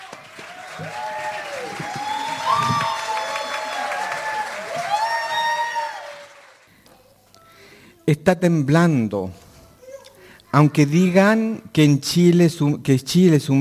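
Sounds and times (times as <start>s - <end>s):
scattered whoops and cheering voices: 0.0s - 6.5s
audience clapping: 0.0s - 6.7s
speech: 0.8s - 1.0s, 8.1s - 9.4s, 10.5s - 13.6s.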